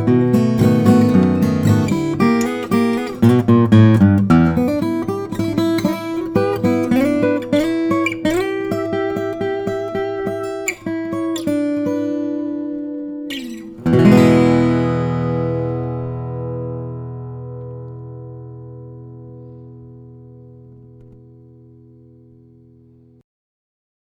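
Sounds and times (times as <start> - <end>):
flattop steel string guitars: 0.0 - 21.1.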